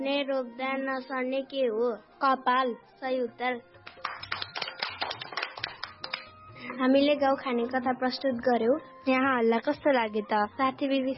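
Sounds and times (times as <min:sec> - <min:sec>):
speech: 0:00.0 - 0:03.8, 0:06.6 - 0:11.1
audience of friends clapping after a riddle presentation: 0:03.8 - 0:06.4.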